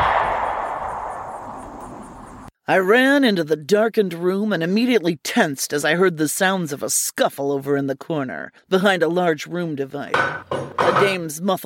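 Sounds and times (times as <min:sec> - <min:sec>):
single gunshot fired in a back room: 0:00.0 - 0:02.5
speech: 0:02.7 - 0:11.6.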